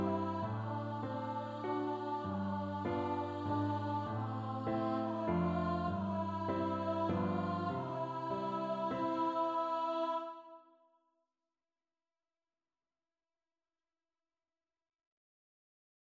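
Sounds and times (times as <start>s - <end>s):
piano: 0.0s - 10.3s
alto singing: 0.0s - 10.6s.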